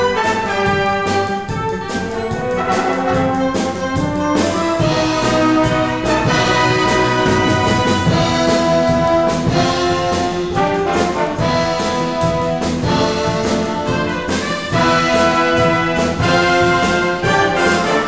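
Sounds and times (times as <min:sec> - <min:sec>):
brass instruments: 0:00.0 - 0:18.0.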